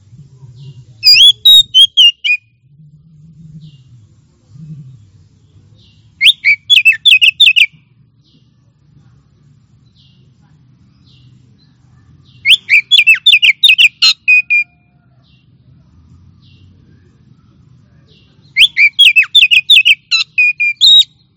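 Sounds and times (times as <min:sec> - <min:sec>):
Oriental magpie-robin singing: 0:00.6 - 0:02.5, 0:05.4 - 0:08.5, 0:09.8 - 0:14.7, 0:16.4 - 0:21.3.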